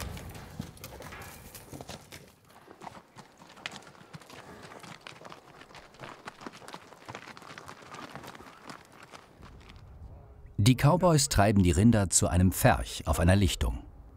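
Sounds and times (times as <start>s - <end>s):
horse hooves clip-clopping: 0.0s - 10.0s
speech: 10.6s - 13.8s.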